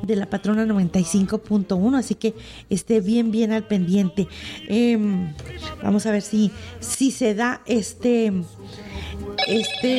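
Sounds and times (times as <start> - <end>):
speech: 0.0 - 9.9
telephone ringing at a radio station: 9.4 - 9.9.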